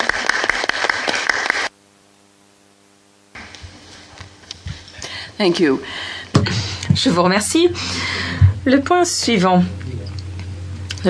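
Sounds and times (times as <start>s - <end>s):
audience applause: 0.0s - 1.7s
low steady electrical hum: 0.0s - 11.0s
speech: 5.4s - 9.8s.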